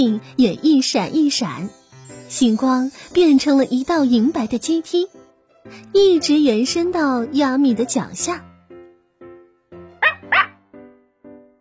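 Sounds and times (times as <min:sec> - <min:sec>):
speech: 0:00.0 - 0:08.5
dog barking: 0:10.0 - 0:10.6.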